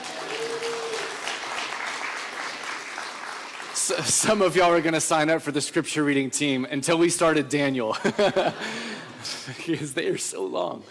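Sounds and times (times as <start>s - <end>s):
round of applause: 0.0s - 4.7s
speech: 3.9s - 10.8s
laughter: 7.9s - 10.0s.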